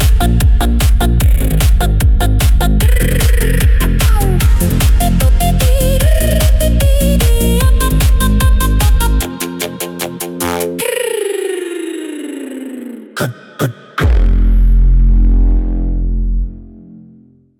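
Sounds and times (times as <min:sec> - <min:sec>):
forest psytrance music: 0:00.0 - 0:17.5.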